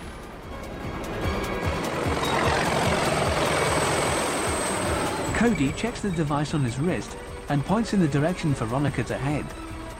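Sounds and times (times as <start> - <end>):
hover vehicle engine roar: 0.6 - 7.6
two huge overhead rotors of a hover vehicle revolving: 1.3 - 7.2
speech: 5.4 - 9.6.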